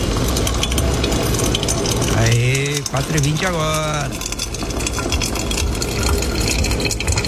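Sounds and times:
hot water poured through coffee grounds in a filter: 0:00.0 - 0:07.2
speech: 0:03.0 - 0:04.3.

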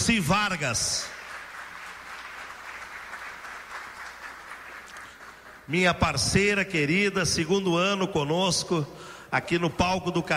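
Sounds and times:
speech: 0:00.0 - 0:01.2, 0:05.7 - 0:10.3
audience applause: 0:01.1 - 0:05.7.

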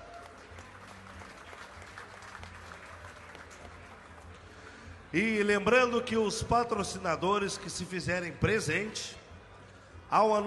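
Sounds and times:
audience applause: 0:00.0 - 0:04.4
speech: 0:05.1 - 0:09.2, 0:10.1 - 0:10.4.

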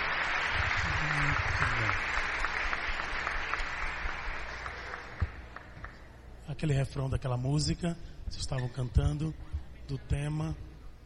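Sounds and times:
audience applause: 0:00.0 - 0:06.0
speech: 0:01.2 - 0:02.3, 0:06.6 - 0:10.7.

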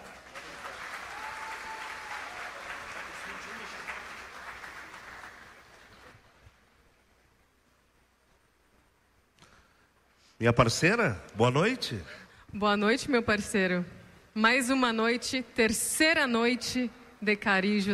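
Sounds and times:
audience applause: 0:00.0 - 0:06.4
speech: 0:10.4 - 0:17.9.

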